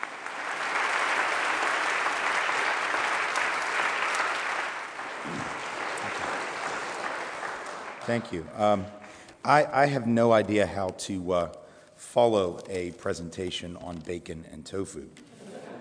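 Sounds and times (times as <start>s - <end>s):
audience applause welcoming a guest speaker at a college convocation: 0.0s - 8.8s
speech: 8.1s - 15.3s.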